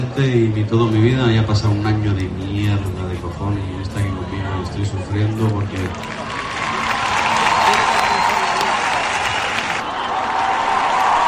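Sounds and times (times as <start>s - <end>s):
speech: 0.2s - 6.2s
concert audience applauding: 5.1s - 11.2s.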